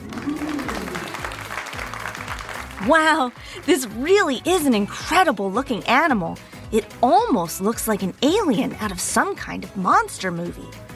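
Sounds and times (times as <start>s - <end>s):
crowd applause sound effect: 0.0s - 3.7s
speech: 2.8s - 10.9s.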